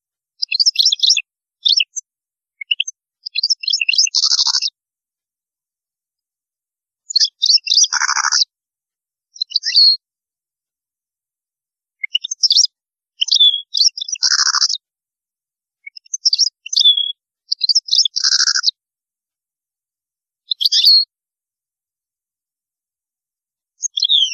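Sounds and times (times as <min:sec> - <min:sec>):
European goldfinch song: 0:00.4 - 0:02.0, 0:02.6 - 0:04.8, 0:07.1 - 0:08.5, 0:09.3 - 0:10.0, 0:12.0 - 0:14.8, 0:15.8 - 0:18.8, 0:20.5 - 0:21.1, 0:23.8 - 0:24.3.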